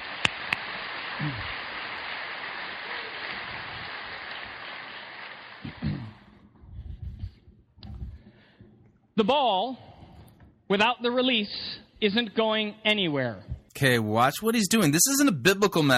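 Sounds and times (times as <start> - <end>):
crowd clapping: 0.0 - 5.6
speech: 1.2 - 1.6, 9.2 - 9.8, 10.7 - 15.9.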